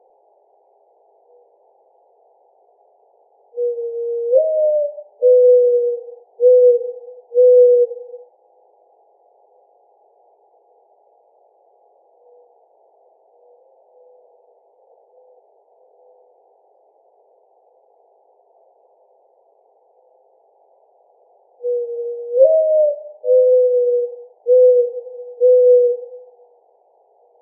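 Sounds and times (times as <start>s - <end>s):
mourning dove cooing: 3.5s - 8.3s, 12.1s - 16.6s, 21.5s - 27.4s.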